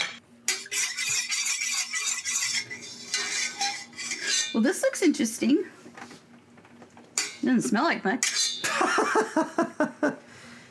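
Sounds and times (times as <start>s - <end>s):
spoon stirring a cornstarch slurry in a small dish: 0.0s - 5.1s, 7.0s - 7.4s, 8.2s - 8.7s
speech: 4.6s - 5.8s, 7.4s - 8.4s, 9.0s - 10.1s
laughter: 8.7s - 10.2s.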